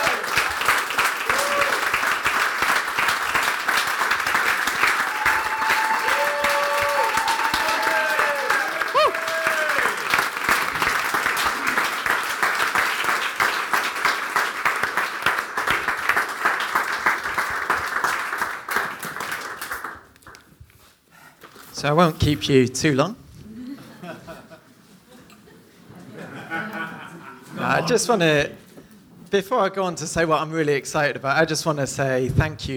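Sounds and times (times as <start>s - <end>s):
crowd applauding: 0.0s - 20.4s
speech: 21.8s - 23.2s, 27.9s - 28.6s, 29.3s - 32.7s
laughter: 23.5s - 27.9s.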